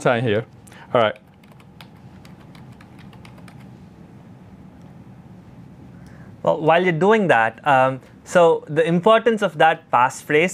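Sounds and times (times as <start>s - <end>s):
speech: 0.0s - 1.2s, 6.4s - 10.5s
computer keyboard keystrokes: 1.0s - 3.7s.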